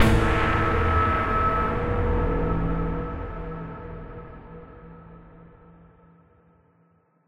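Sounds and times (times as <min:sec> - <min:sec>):
short musical sting: 0:00.0 - 0:03.1.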